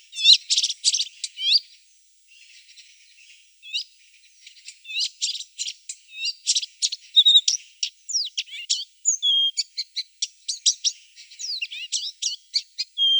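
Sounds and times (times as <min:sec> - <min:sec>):
Blyth's reed warbler Acrocephalus dumetorum singing a hurried medley of clicks, chirps and whistles: 0:00.0 - 0:13.1.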